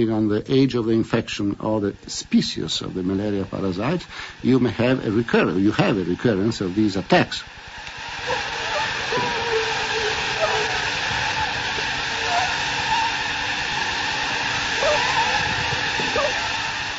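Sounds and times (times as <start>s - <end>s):
speech: 0.0s - 7.6s
malaria mosquitoes buzzing in a container: 8.2s - 16.9s.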